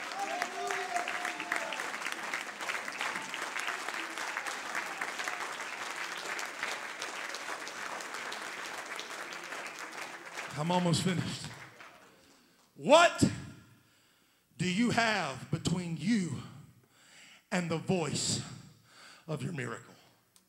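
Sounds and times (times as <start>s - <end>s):
audience clapping hands: 0.0s - 12.7s
speech: 10.6s - 11.6s, 12.8s - 13.3s, 14.6s - 16.5s, 17.5s - 18.5s, 19.3s - 19.9s.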